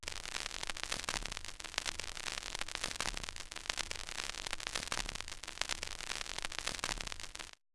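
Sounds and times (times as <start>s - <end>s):
vinyl noise from Roland MC-909: 0.0s - 7.6s.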